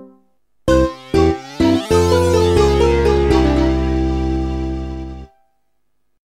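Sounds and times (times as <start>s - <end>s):
game over jingle: 0.7s - 5.4s.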